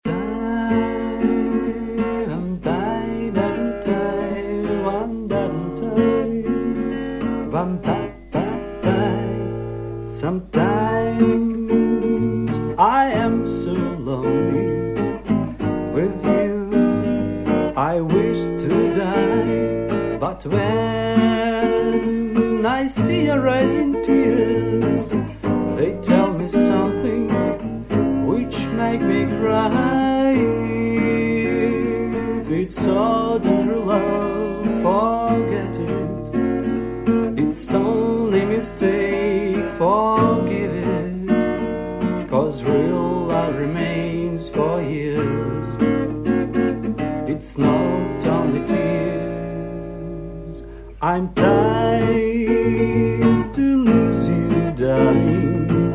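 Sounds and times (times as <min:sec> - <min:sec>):
acoustic music: 0:00.0 - 0:55.9.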